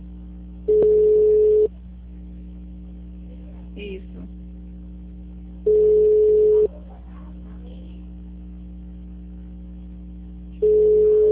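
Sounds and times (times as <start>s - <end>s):
constant low hum: 0.0s - 11.3s
telephone line tone after a dropped call: 0.7s - 1.7s, 5.6s - 6.7s, 10.6s - 11.3s.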